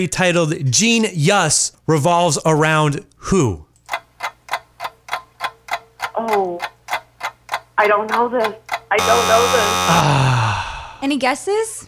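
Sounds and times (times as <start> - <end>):
speech: 0.0 - 4.0, 7.8 - 10.4, 11.0 - 11.8
quiz timer ticking: 3.8 - 10.1
short voiced tone: 9.0 - 10.1.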